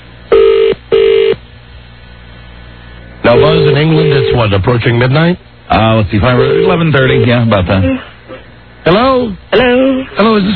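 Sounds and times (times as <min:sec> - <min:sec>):
telephone ringing: 0:00.3 - 0:01.4, 0:03.3 - 0:04.5, 0:06.2 - 0:07.6
speech: 0:03.3 - 0:08.1, 0:08.8 - 0:10.5.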